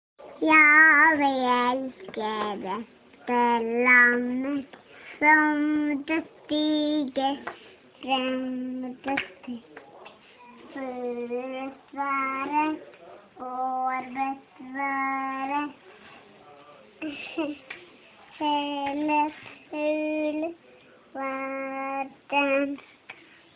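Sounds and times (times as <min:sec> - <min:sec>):
two-year-old child singing: 0:00.4 - 0:09.6, 0:10.7 - 0:12.8, 0:13.4 - 0:15.8, 0:18.4 - 0:20.6, 0:21.2 - 0:22.8.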